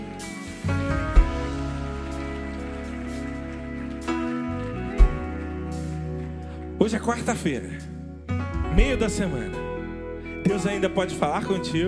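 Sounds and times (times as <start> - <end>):
audience applause: 0.0 - 7.6
sustained keyboard chords: 0.0 - 11.8
speech: 6.8 - 8.0, 8.8 - 9.6, 10.4 - 11.8.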